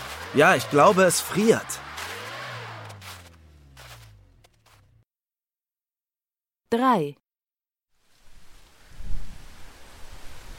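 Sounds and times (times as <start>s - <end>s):
speech: 0.3s - 1.9s, 6.7s - 7.2s
strong wind before a storm: 8.4s - 10.5s.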